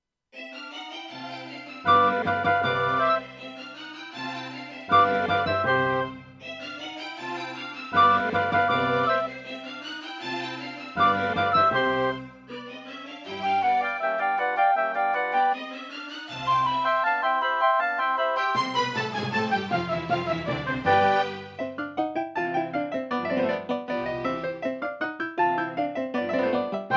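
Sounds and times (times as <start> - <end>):
Ensoniq VIVO 90DB-A digital piano: 1.9 - 3.2, 4.9 - 6.2, 8.0 - 9.4, 11.0 - 12.2, 13.4 - 15.6, 16.5 - 18.8, 19.6 - 26.9.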